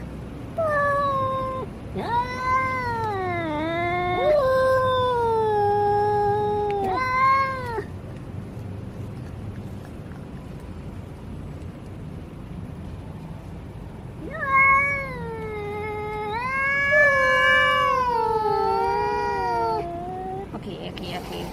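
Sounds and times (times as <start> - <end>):
domestic cat yowling meow: 0.6 - 7.9, 14.2 - 20.5.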